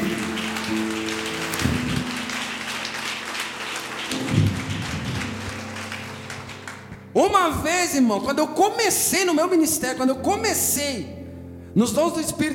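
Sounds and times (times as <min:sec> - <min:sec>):
audience applauding: 0:00.0 - 0:07.2
speech: 0:07.2 - 0:11.2, 0:11.8 - 0:12.5.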